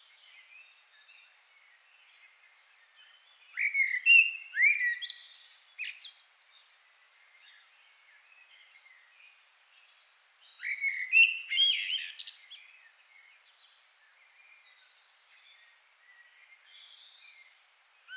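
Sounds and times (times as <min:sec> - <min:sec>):
common blackbird fluted song: 0:02.0 - 0:18.1.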